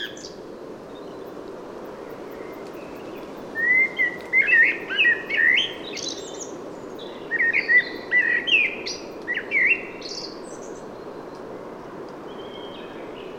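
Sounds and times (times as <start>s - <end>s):
common blackbird Turdus merula singing: 3.6s - 10.7s.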